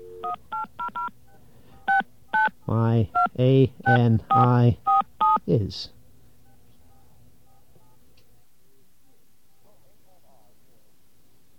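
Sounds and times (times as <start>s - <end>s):
faint hum: 0.0s - 11.5s
telephone touch-tone dialing beeps: 0.2s - 1.1s, 1.9s - 2.5s, 3.9s - 5.4s
speech: 2.7s - 4.9s, 5.5s - 6.0s.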